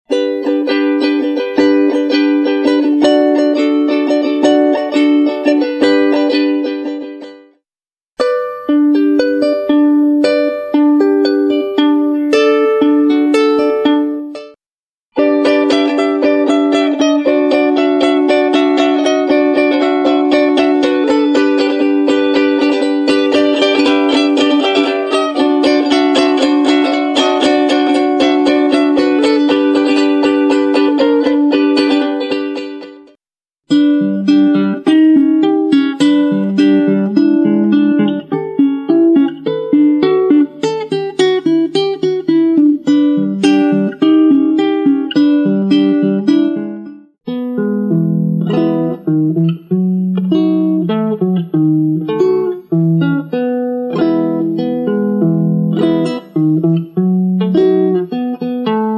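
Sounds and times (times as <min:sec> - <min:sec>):
ukulele: 0:00.1 - 0:07.6, 0:08.2 - 0:58.9.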